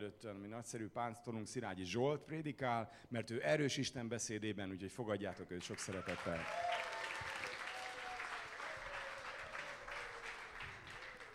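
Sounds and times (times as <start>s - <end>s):
speech: 0.0s - 7.0s
audience applause: 5.7s - 11.3s.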